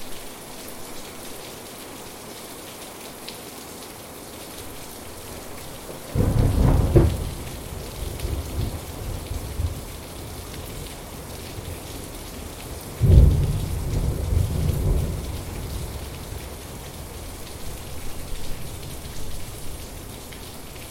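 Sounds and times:
steady rain in a thunderstorm: 0:04.3 - 0:20.9
thunder rumbling: 0:05.9 - 0:11.9, 0:12.8 - 0:17.8.

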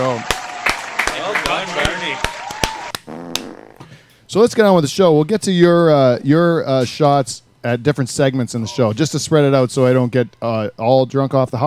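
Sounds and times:
applause: 0:00.0 - 0:03.0
speech: 0:04.3 - 0:11.6.

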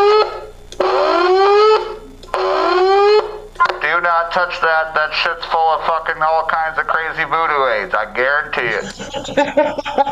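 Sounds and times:
alarm: 0:00.0 - 0:04.0
speech: 0:04.3 - 0:10.1
laughter: 0:08.6 - 0:10.1.

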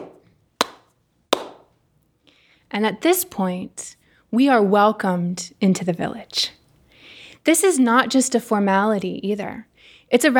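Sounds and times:
slow ceremonial hand claps: 0:00.0 - 0:01.7
speech: 0:02.7 - 0:06.6, 0:07.4 - 0:10.3.

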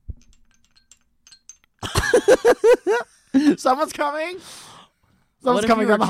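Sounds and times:
small bells jingling: 0:00.0 - 0:03.0
laughter: 0:01.8 - 0:03.6
speech: 0:02.1 - 0:04.6, 0:05.4 - 0:06.0.

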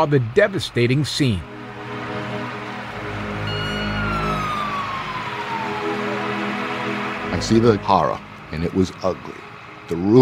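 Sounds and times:
speech: 0:00.0 - 0:01.5, 0:07.4 - 0:10.1
engine and traffic rumble: 0:01.5 - 0:10.1
fire truck siren wailing: 0:01.9 - 0:08.6.

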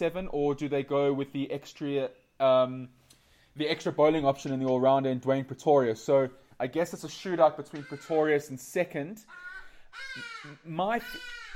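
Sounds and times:
speech: 0:00.0 - 0:03.0, 0:03.6 - 0:11.4
hadeda ibis calling: 0:09.2 - 0:11.5.

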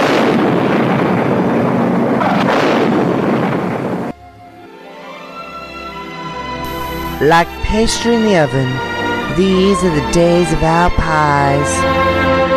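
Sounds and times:
bomb explosion: 0:00.0 - 0:04.1
speech: 0:07.2 - 0:12.3.

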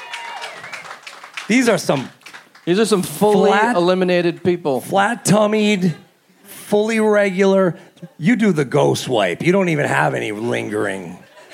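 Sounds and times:
live audience applause: 0:00.0 - 0:03.4
speech: 0:01.5 - 0:06.0, 0:06.7 - 0:11.5.

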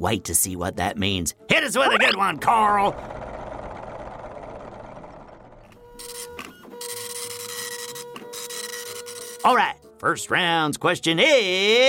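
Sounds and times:
speech: 0:00.0 - 0:03.2, 0:09.4 - 0:11.8
printer printing out a question: 0:06.0 - 0:09.5.

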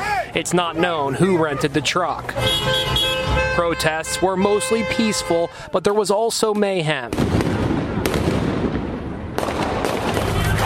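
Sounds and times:
speech: 0:00.4 - 0:03.0, 0:03.6 - 0:07.8
gunshots: 0:07.0 - 0:10.6.

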